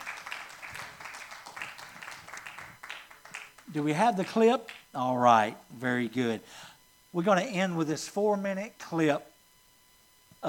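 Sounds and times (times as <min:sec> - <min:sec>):
crowd applause: 0:00.0 - 0:03.7
speech: 0:03.7 - 0:09.3.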